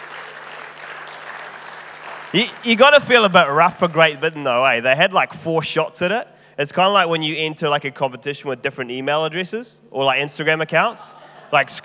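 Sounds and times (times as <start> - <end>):
many hands clapping: 0.0 - 4.4
speech: 2.3 - 11.8.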